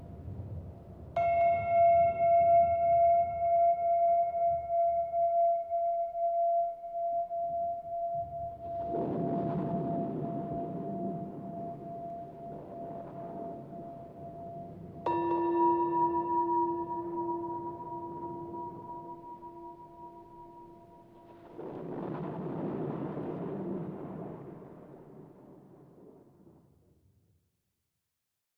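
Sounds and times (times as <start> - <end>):
Tibetan singing bowls: 1.2 - 21.4
approaching storm: 8.2 - 15.1, 21.1 - 26.8.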